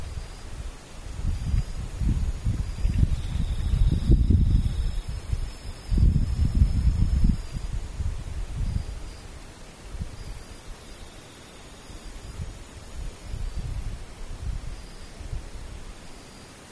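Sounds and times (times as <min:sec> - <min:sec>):
soft low rumbling gusts: 0:00.0 - 0:10.4, 0:12.2 - 0:15.9
insects faintly buzzing in the distance outdoors: 0:00.0 - 0:16.7.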